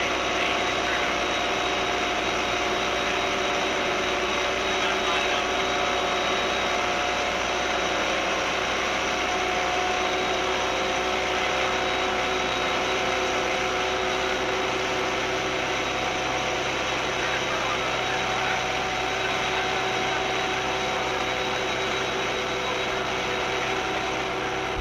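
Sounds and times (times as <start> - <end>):
loud turbine hum in an engine room: 0.0 - 24.7.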